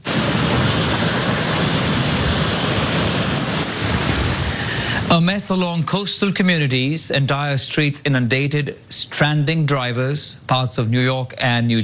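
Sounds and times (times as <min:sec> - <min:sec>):
fierce winds of a powerful storm on the U.S. East Coast: 0:00.0 - 0:05.1
soaking rain of a powerful storm on the U.S. East Coast: 0:00.0 - 0:05.2
speech: 0:05.1 - 0:11.8.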